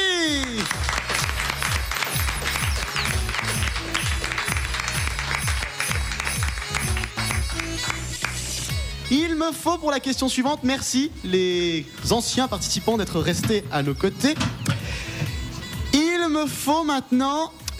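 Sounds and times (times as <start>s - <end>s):
audience applause: 0.0s - 8.5s
loud music with regular thumping beat: 0.3s - 16.9s, 17.5s - 17.7s
speech: 9.4s - 15.1s, 16.3s - 17.6s.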